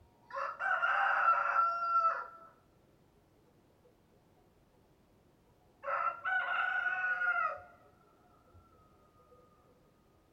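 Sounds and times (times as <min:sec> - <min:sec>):
rooster crowing cock-a-doodle-doo: 0:00.3 - 0:02.5, 0:05.8 - 0:07.8.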